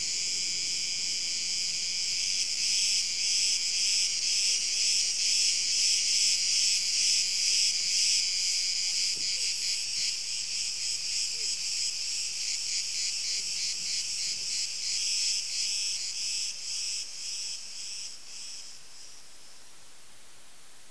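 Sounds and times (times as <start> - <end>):
crickets: 0.0 - 20.8.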